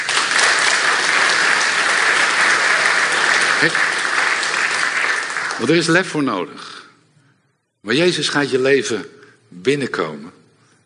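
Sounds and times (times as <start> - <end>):
audience applause: 0.0 - 6.0
speech: 3.6 - 3.9, 5.6 - 6.8, 7.8 - 10.4.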